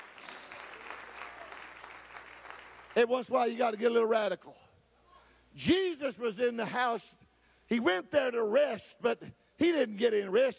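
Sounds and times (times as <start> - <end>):
audience clapping hands: 0.0 - 3.1
speech: 3.0 - 4.6, 5.6 - 10.5.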